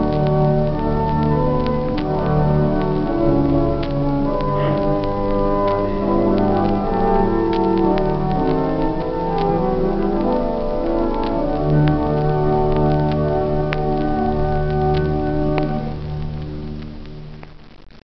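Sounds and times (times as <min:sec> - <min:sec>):
cathedral pipe organ foundation stops of swell and great manuals in Oran: 0:00.0 - 0:17.0.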